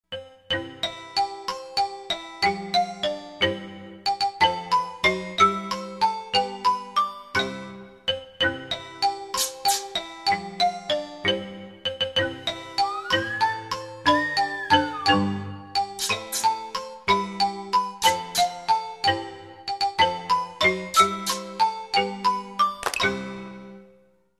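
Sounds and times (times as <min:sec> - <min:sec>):
music: 0:00.1 - 0:24.3.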